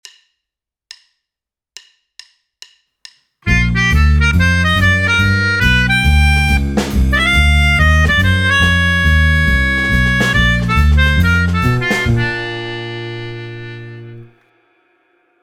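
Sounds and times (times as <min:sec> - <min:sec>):
soloist exercise: 0:03.5 - 0:14.3.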